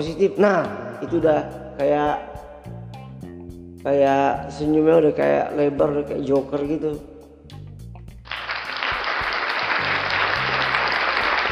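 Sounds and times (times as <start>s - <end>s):
speech: 0.0s - 2.8s, 3.8s - 7.1s
applause: 8.3s - 11.5s.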